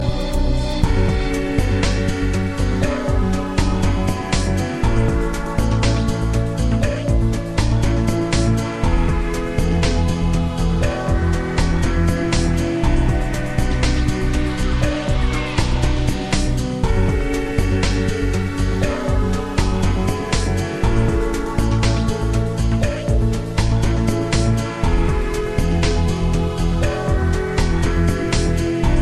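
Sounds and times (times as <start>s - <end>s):
relaxing sound: 0.0s - 29.0s.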